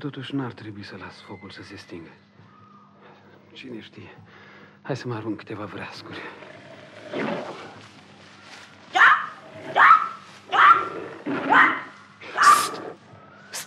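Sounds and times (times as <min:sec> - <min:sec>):
speech: 0:00.0 - 0:02.3, 0:03.6 - 0:06.5, 0:07.1 - 0:07.5
panther growling: 0:05.9 - 0:07.8, 0:09.2 - 0:09.8, 0:10.5 - 0:13.1.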